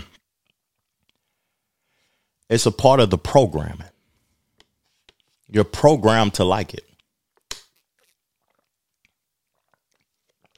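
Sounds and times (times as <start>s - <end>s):
speech: 2.5s - 3.9s, 5.5s - 6.9s
person chewing olives and smoked Gouda: 7.0s - 10.5s.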